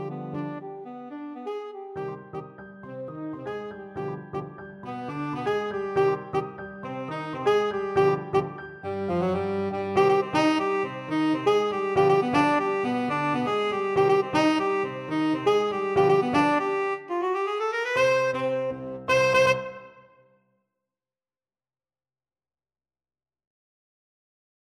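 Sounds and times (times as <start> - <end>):
tenor saxophone: 0.0 - 2.6, 3.5 - 20.2.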